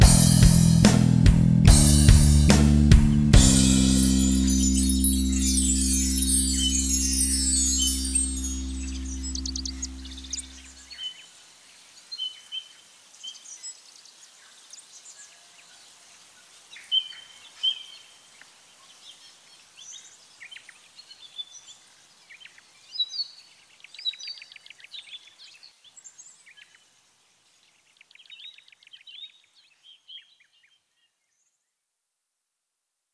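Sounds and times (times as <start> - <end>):
bass guitar: 0.0 - 10.5.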